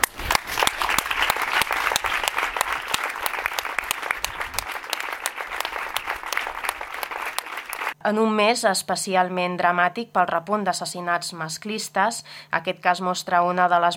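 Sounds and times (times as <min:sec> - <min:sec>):
applause from a gathered crowd: 0:00.0 - 0:08.0
speech: 0:08.0 - 0:13.9.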